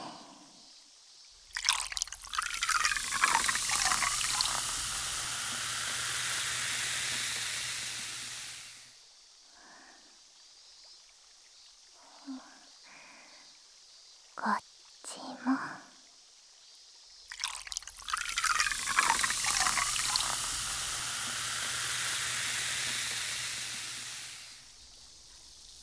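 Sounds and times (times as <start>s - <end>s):
faint drips: 1.4s - 8.8s, 17.3s - 25.8s
liquid poured beside the ear: 1.4s - 8.8s, 17.3s - 25.8s.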